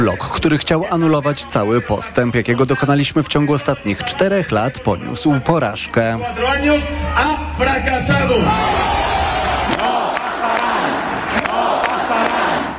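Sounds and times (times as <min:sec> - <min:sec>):
speech: 0:00.0 - 0:09.0
crowd chanting antifascist slogan: 0:08.1 - 0:12.7.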